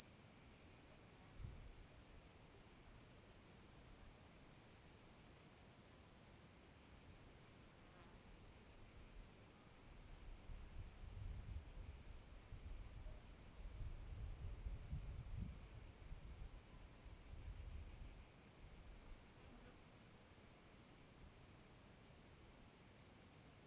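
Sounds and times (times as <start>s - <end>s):
crickets trilling on a path slope by an archaeological area: 0.1s - 23.6s.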